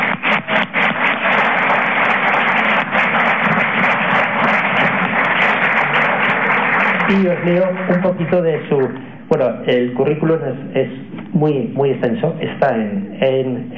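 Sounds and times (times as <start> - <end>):
audience applause: 0.0 - 8.9
speech: 7.1 - 13.7.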